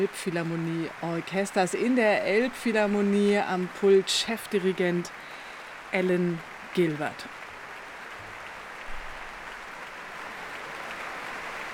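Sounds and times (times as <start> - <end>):
speech: 0.0 - 7.4
concert audience applause in the Elbphilharmonie: 0.0 - 11.7.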